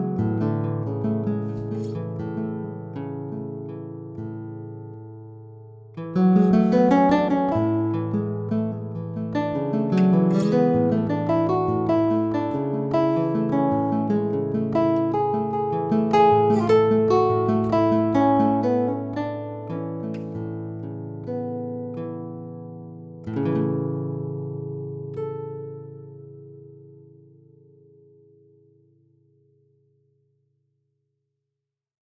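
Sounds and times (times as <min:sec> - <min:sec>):
guitar plucking: 0:00.0 - 0:28.6.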